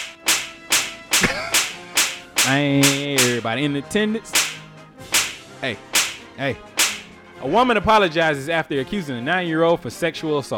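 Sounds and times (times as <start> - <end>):
slaps: 0.0 - 3.5, 4.3 - 7.2
speech: 2.5 - 4.4, 5.6 - 6.7, 7.4 - 10.5.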